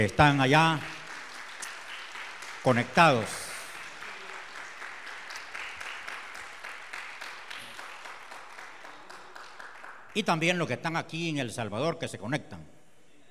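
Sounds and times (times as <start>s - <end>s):
speech: 0.0s - 1.0s, 2.6s - 3.4s, 10.2s - 12.8s
audience applauding: 0.0s - 10.2s.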